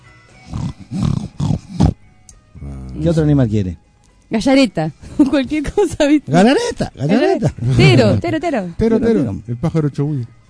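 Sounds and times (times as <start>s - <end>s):
person imitating a pig with throaty grunting snorts: 0.5s - 2.0s
speech: 0.8s - 1.1s, 3.0s - 10.4s.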